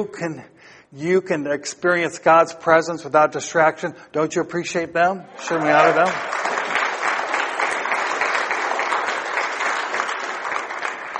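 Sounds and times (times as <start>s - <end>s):
speech: 0.0s - 6.4s
clapping applause: 5.4s - 11.1s.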